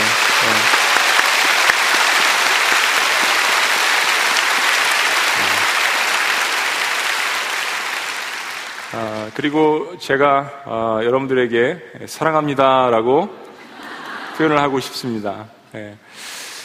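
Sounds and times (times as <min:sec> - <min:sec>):
crowd applauding: 0:00.0 - 0:09.6
low murmurs: 0:05.3 - 0:05.7
speech: 0:09.4 - 0:13.4, 0:14.4 - 0:16.4
laughter: 0:13.6 - 0:15.0.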